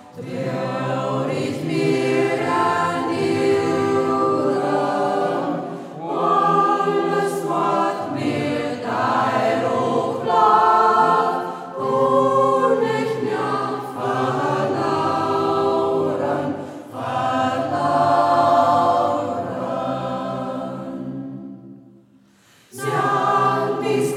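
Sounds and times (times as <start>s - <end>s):
singing circle in Braller local dialect: 0.0s - 24.1s.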